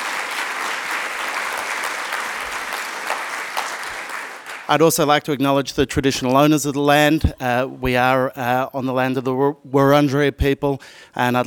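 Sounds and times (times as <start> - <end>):
audience applause: 0.0 - 4.9
speech: 4.7 - 11.4.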